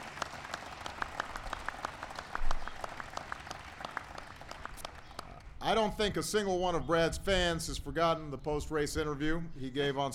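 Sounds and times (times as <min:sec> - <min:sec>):
crowd applause: 0:00.0 - 0:05.4
speech: 0:05.6 - 0:10.1.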